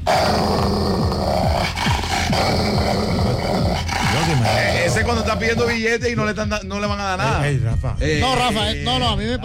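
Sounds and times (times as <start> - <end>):
dog growling: 0.1 - 5.8
speech: 5.1 - 9.4.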